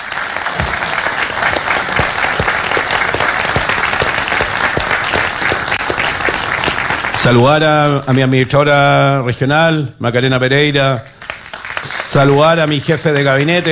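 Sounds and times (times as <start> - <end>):
audience applause: 0.0 - 8.4, 11.2 - 13.6
speech: 7.2 - 11.1, 11.8 - 13.6.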